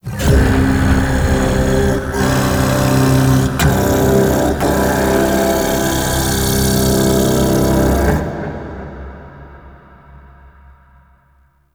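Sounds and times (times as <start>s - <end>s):
vocals: 0.0s - 11.1s.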